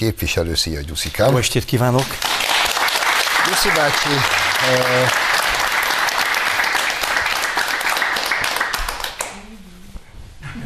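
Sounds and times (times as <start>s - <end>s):
speech: 0.0s - 2.7s, 3.5s - 5.3s
studio audience applause: 1.0s - 9.4s.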